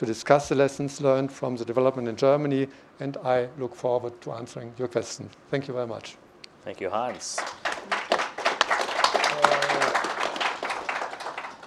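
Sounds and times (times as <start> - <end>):
speech: 0.0 - 8.0
crowd applauding: 7.0 - 11.6.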